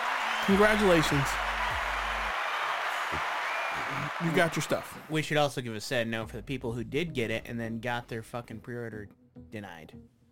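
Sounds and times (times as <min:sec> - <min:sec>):
applause: 0:00.0 - 0:05.1
speech: 0:00.5 - 0:01.4, 0:03.1 - 0:10.2.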